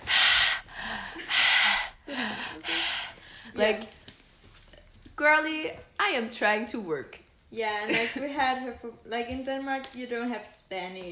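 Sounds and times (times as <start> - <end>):
person imitating a smoker's laboured rasping breathing: 0.0 - 3.6
speech: 3.6 - 4.0, 5.2 - 11.1.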